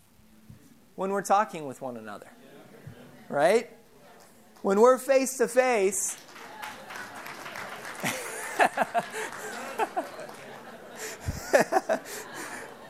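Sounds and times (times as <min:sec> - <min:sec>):
speech: 0:01.0 - 0:02.4, 0:03.3 - 0:03.8, 0:04.6 - 0:06.3, 0:09.0 - 0:10.1
murmur of voices: 0:02.1 - 0:12.8
church congregation clapping: 0:05.9 - 0:12.8
chuckles and laughter: 0:06.2 - 0:12.8.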